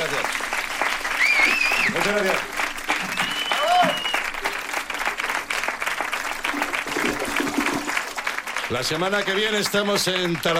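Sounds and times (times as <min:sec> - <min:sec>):
crowd applauding for the band: 0:00.0 - 0:10.5
high whistle: 0:01.1 - 0:02.0, 0:03.0 - 0:04.4
cheering voices: 0:01.2 - 0:04.5
speech: 0:02.1 - 0:02.6, 0:08.7 - 0:10.5.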